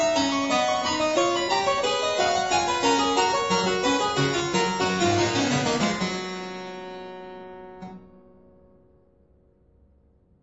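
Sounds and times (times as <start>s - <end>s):
two-manual harpsichord piece: 0.0s - 8.0s.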